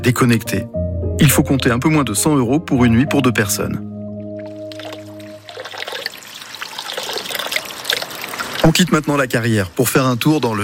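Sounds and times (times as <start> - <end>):
speech: 0.0 - 3.9, 8.6 - 10.6
water trickling from village fountain: 4.3 - 10.6.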